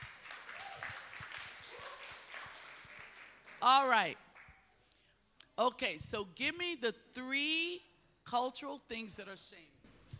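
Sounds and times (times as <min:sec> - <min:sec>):
audience clapping: 0:00.0 - 0:04.8
speech: 0:03.6 - 0:04.2, 0:05.6 - 0:09.7.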